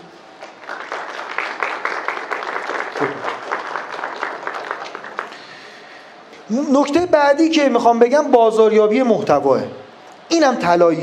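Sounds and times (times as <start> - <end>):
audience applause: 0.3 - 5.8
speech: 3.0 - 3.3, 6.5 - 9.8, 10.4 - 11.0.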